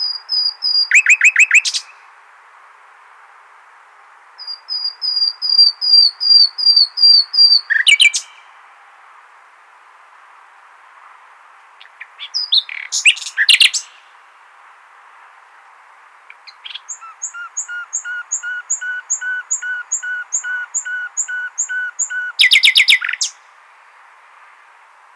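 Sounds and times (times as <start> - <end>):
common nightingale singing: 0.0 - 2.1, 4.4 - 8.6, 11.7 - 14.2, 16.2 - 23.6.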